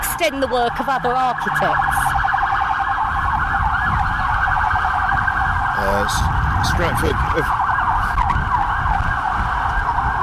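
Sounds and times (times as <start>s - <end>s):
tinny electronic ice cream van chime: 0.0s - 2.3s
low rumbling engine or traffic hum: 0.0s - 10.2s
speech: 0.2s - 2.1s, 5.8s - 7.6s.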